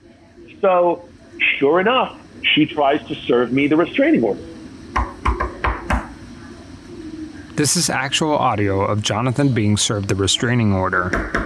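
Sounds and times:
speech: 0:00.6 - 0:04.5, 0:07.6 - 0:11.4
heavy knocks on a door: 0:05.0 - 0:06.1, 0:11.1 - 0:11.4.

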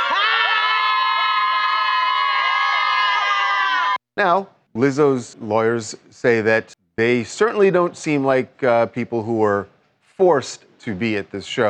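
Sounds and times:
crowd of excited women cheering and shrieking: 0:00.0 - 0:04.0
speech: 0:04.2 - 0:11.6.

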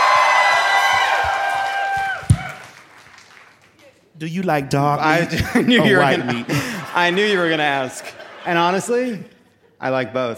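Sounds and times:
live audience cheering and whooping: 0:00.0 - 0:02.8
speech: 0:04.2 - 0:10.3
laughter: 0:05.0 - 0:10.1.

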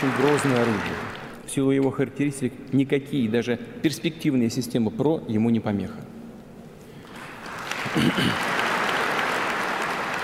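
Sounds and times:
applause: 0:00.0 - 0:01.4, 0:07.0 - 0:10.2
speech: 0:00.0 - 0:06.1, 0:07.9 - 0:08.6.

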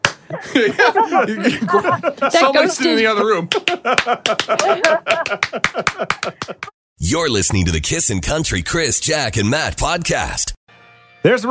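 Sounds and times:
hand clap: 0:00.0 - 0:00.4, 0:03.5 - 0:06.8
laughter: 0:00.2 - 0:06.7
speech: 0:00.4 - 0:10.6, 0:11.2 - 0:11.4.

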